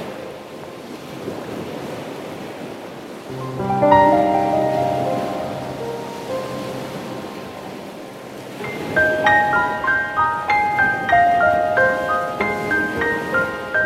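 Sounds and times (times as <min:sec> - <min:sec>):
ocean waves: 0:00.0 - 0:13.8
piano playing: 0:03.3 - 0:13.8.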